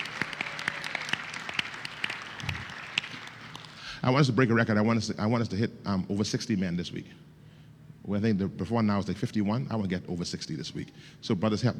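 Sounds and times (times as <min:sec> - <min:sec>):
audience clapping: 0:00.0 - 0:04.0
speech: 0:04.0 - 0:07.3, 0:08.0 - 0:11.7.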